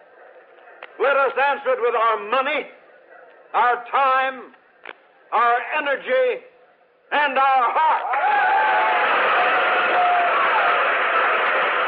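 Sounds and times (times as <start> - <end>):
speech: 1.0 - 2.8, 3.5 - 4.6, 5.3 - 6.5, 7.1 - 8.5
big convention crowd cheering and applauding: 8.0 - 11.8.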